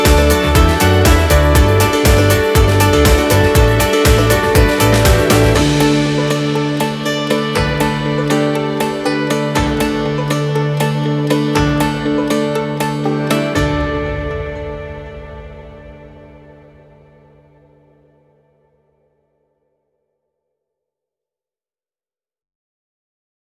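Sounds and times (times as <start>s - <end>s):
happy adventurous indie folk music: 0.0s - 17.0s.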